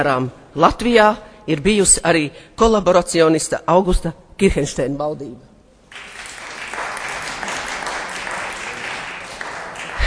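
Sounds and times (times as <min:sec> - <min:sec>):
speech: 0:00.0 - 0:05.5
applause in an assembly hall: 0:05.9 - 0:10.0.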